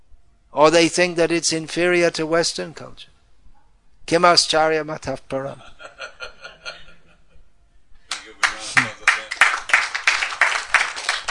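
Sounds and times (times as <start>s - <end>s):
speech: 0.6s - 3.1s, 4.1s - 5.8s
laughter: 5.5s - 7.5s
hands clapping: 8.1s - 11.2s.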